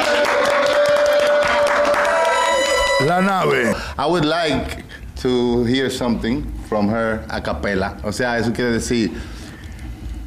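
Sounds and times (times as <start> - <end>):
audience applause for a singer: 0.0 - 3.7
sustained even tone: 2.2 - 3.8
speech: 3.0 - 9.4.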